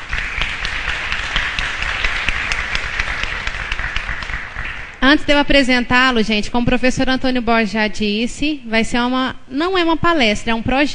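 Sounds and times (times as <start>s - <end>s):
audience applause: 0.0s - 5.0s
speech: 5.0s - 10.9s.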